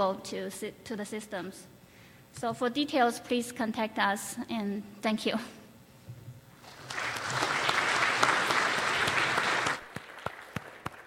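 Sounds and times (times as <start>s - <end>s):
speech: 0.0s - 5.6s
audience applause: 6.6s - 11.0s.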